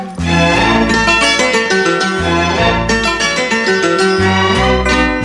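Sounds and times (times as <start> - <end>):
Tamil music mix ringtone: 0.2 - 5.2.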